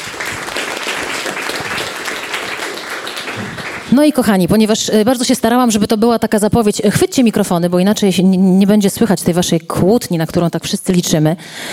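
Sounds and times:
audience applause: 0.0s - 4.0s
speech: 4.0s - 11.7s.

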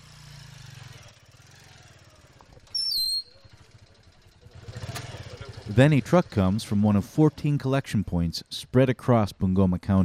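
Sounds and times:
motorcycle engine puttering: 0.7s - 2.8s, 3.4s - 7.1s
speech: 5.8s - 10.0s.

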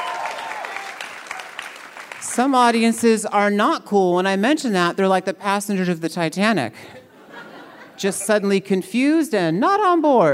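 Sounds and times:
audience cheering: 0.0s - 2.2s
speech: 2.4s - 7.0s, 8.0s - 10.3s
laughter: 6.9s - 8.5s.

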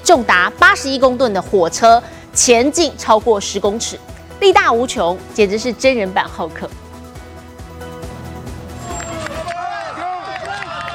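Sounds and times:
speech: 0.1s - 6.8s
crowd shouting encouragement: 8.8s - 10.9s.

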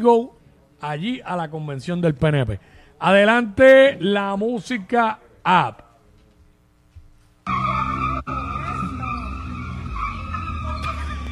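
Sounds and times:
speech: 0.0s - 5.8s
car tires squealing: 7.5s - 11.2s.

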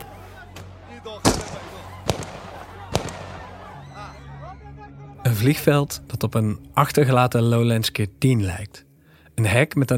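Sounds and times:
laughter: 0.0s - 5.1s
stun grenades: 1.2s - 3.5s
speech: 5.3s - 9.9s.

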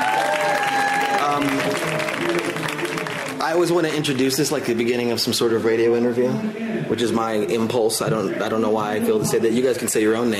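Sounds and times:
audience applause: 0.0s - 4.6s
speech: 1.4s - 1.9s, 3.5s - 10.3s.

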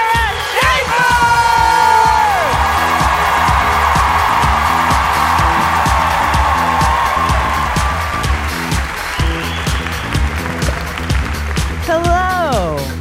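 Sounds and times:
audience clapping: 0.0s - 12.9s.

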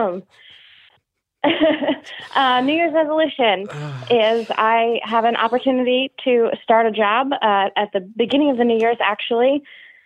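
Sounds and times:
speech: 0.0s - 0.6s, 1.4s - 9.8s
laughter: 1.5s - 3.1s
throat clearing: 3.6s - 5.3s.

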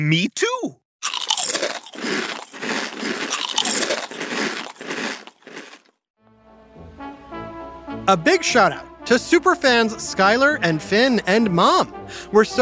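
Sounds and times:
speech: 0.0s - 0.8s, 8.1s - 12.6s
crunching and chewing plain potato chips: 1.0s - 6.0s.

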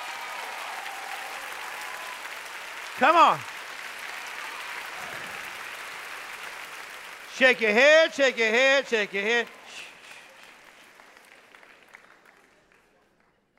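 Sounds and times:
audience clapping hands: 0.0s - 13.5s
person shouting: 3.0s - 3.4s
speech: 3.0s - 3.5s, 7.4s - 9.9s.

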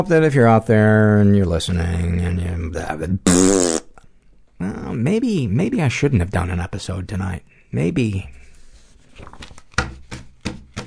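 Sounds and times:
speech: 0.0s - 3.8s, 4.6s - 8.4s
papers being shuffled: 8.4s - 10.7s.

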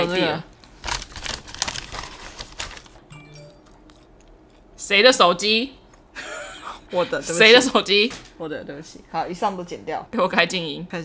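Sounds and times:
speech: 0.0s - 0.5s, 4.9s - 5.8s, 6.9s - 11.0s
paper bag crinkling: 0.0s - 4.0s.

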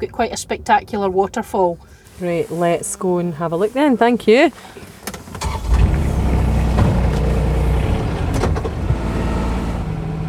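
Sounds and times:
speech: 0.0s - 5.0s
Polaris off-road utility vehicle engine rumbling while driving: 0.0s - 10.2s
chassis clanks and knocks over rough ground: 5.0s - 9.9s.

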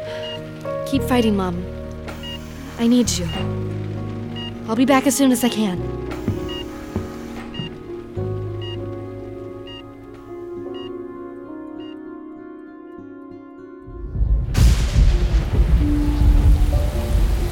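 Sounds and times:
speech: 0.9s - 1.7s, 2.8s - 3.7s, 4.7s - 6.0s
storm with flooding streets: 13.9s - 17.5s.

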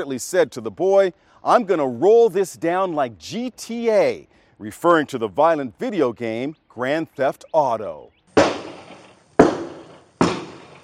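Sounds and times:
speech: 0.0s - 8.2s
gunshots fired out of a vehicle's rear window: 8.4s - 10.8s.

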